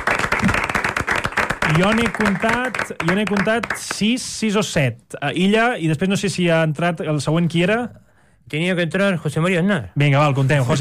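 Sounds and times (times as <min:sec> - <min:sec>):
crowd applause: 0:00.0 - 0:04.0
speech: 0:01.7 - 0:10.8.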